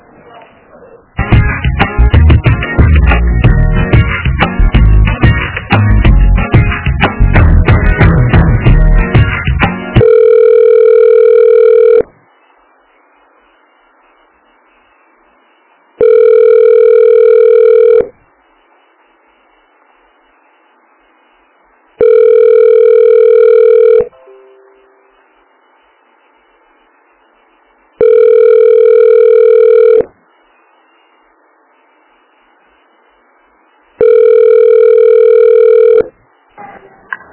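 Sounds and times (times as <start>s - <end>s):
harsh noise on the phone line: 1.0s - 37.3s
telephone ringback tone while a call is transferred: 10.0s - 12.1s, 16.0s - 18.1s, 22.0s - 24.9s, 28.0s - 30.1s, 34.0s - 36.1s.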